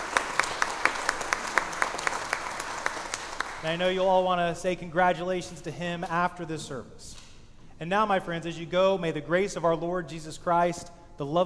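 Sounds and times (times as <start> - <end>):
audience applause: 0.0 - 3.7
speech: 3.6 - 7.2, 7.8 - 11.4.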